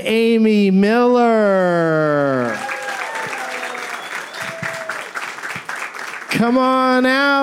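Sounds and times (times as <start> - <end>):
speech: 0.0 - 2.6, 6.4 - 7.4
audience applause welcoming guests onto a talk show: 2.4 - 7.4.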